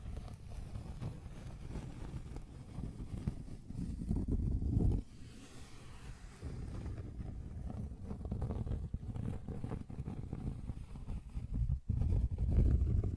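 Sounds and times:
scratching and tracing scrape: 0.0s - 13.1s.

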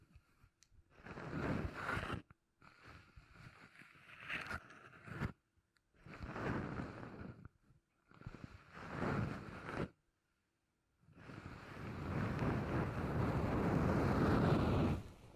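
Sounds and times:
beeswax being handled and rubbed: 0.9s - 5.4s, 6.0s - 7.5s, 8.1s - 10.0s, 11.2s - 15.3s.

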